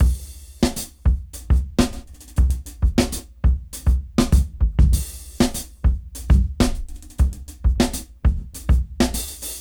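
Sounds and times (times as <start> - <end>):
dry jazz at 99 BPM: 0.0 - 9.5.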